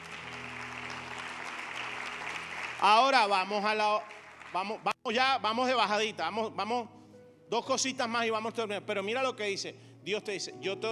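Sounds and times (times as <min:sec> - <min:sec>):
church congregation clapping: 0:00.0 - 0:05.0
speech: 0:02.8 - 0:10.8.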